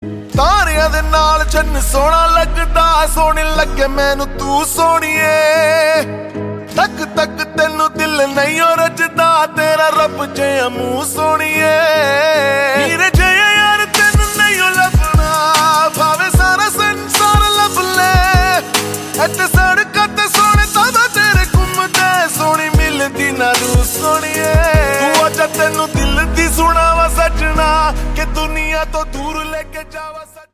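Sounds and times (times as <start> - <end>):
song: 0.1 - 30.5.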